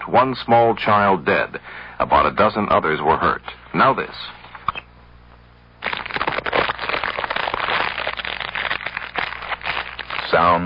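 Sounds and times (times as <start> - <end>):
speech: 0.1 - 4.4, 10.3 - 10.6
crackling fire: 5.8 - 10.6.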